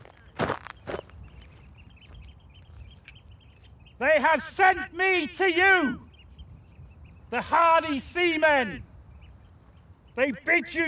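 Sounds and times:
footsteps on a slightly wet causeway: 0.0 - 3.1
birds chirping: 0.0 - 10.8
speech: 4.0 - 6.0, 7.3 - 8.9, 10.2 - 10.8.

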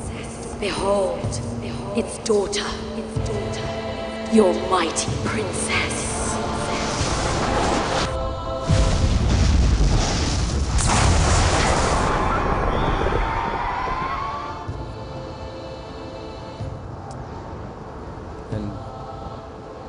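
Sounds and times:
speech: 0.6 - 6.2
thunder crash from lightning storm: 6.8 - 14.7.

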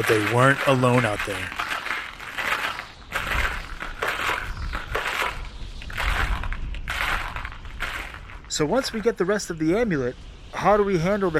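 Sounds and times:
speech: 0.0 - 1.6, 8.6 - 11.3
footsteps crunching through snow: 0.0 - 9.1.

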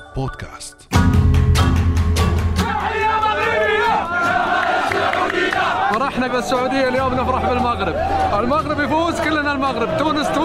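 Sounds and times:
speech: 0.2 - 1.2, 6.1 - 10.4
sharp rhythmic claps: 1.4 - 7.8
football crowd chanting loudly: 2.6 - 8.2, 8.9 - 10.4.

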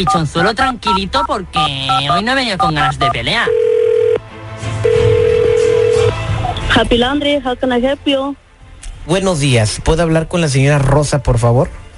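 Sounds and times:
speech: 0.0 - 3.6, 6.8 - 8.4, 9.0 - 11.8
telephone dialing beep: 1.6 - 4.2, 4.9 - 6.2.

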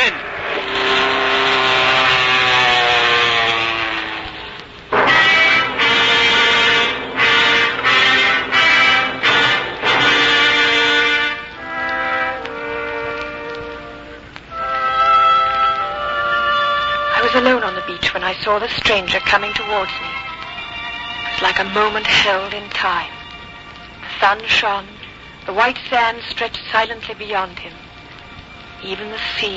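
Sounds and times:
airplane engine in trouble droning and sputtering: 0.0 - 20.6
speech: 18.5 - 20.2, 21.4 - 23.2, 24.2 - 27.8, 28.8 - 29.5.

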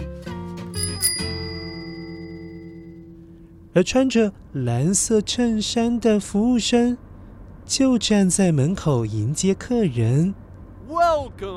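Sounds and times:
bicycle bell ringing: 0.8 - 3.1
speech: 3.7 - 7.0, 7.7 - 11.5.

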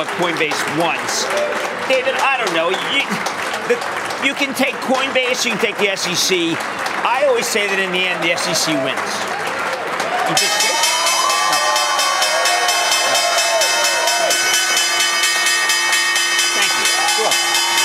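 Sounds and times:
speech: 0.0 - 9.4, 10.3 - 10.6
crowd cheering and chatter: 0.0 - 17.8
stock exchange opening bell ringing: 10.4 - 17.8.

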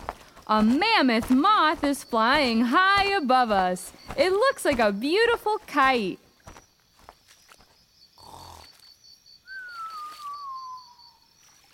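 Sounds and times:
speech: 0.5 - 6.2
giant sloth snoring, cartoonish snore: 8.2 - 8.8.

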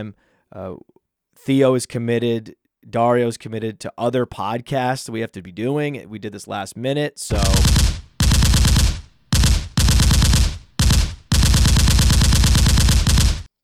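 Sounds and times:
speech: 0.0 - 8.0
machine gun sound effect: 7.3 - 13.5.

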